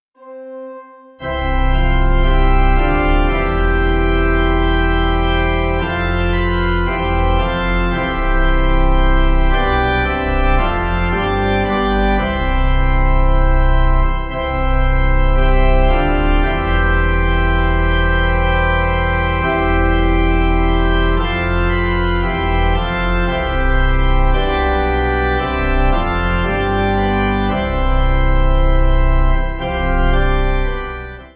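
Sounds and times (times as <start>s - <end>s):
pipe organ: 0.2s - 31.3s.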